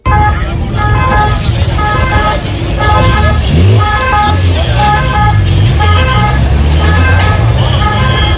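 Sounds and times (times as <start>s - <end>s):
Red Cross ambulance sirens: 0.0s - 8.3s.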